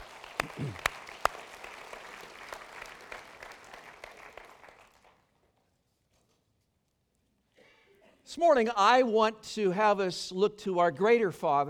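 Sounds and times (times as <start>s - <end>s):
audience round of applause: 0.0s - 5.2s
speech: 8.3s - 11.6s.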